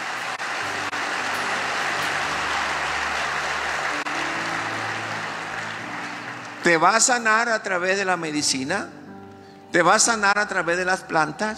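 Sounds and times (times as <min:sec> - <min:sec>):
crowd applause: 0:00.0 - 0:07.8
speech: 0:06.7 - 0:09.0, 0:09.7 - 0:11.5.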